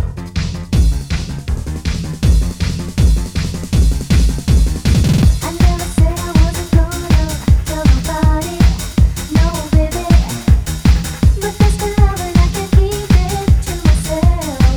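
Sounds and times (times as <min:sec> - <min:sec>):
happy hardcore techno trance acid rave music: 0:00.0 - 0:14.7.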